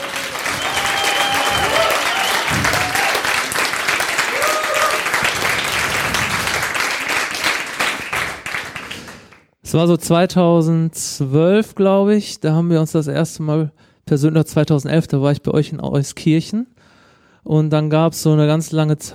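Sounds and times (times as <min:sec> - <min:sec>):
audience applause: 0:00.0 - 0:09.4
speech: 0:09.7 - 0:16.8, 0:17.4 - 0:19.1.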